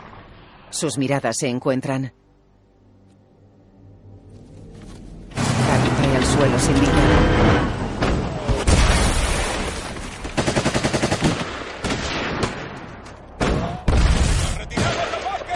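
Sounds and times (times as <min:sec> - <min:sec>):
speech: 0:00.7 - 0:02.2, 0:06.4 - 0:07.6
single gunshots in a World War II battle scene: 0:05.3 - 0:06.3, 0:07.0 - 0:15.5.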